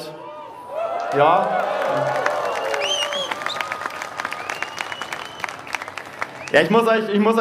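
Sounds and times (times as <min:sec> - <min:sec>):
crowd cheering and shouting joyfully: 0:00.0 - 0:04.4
dense clapping: 0:01.0 - 0:06.7
speech: 0:01.1 - 0:02.2, 0:06.5 - 0:07.3.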